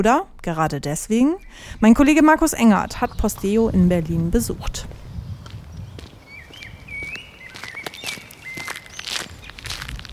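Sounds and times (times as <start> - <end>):
speech: 0.0 - 5.0
quiet outdoor ambience: 0.0 - 10.1
footsteps on the brick grounds of the former Schultheiss brewery in Berlin-Kreuzberg: 4.9 - 10.1.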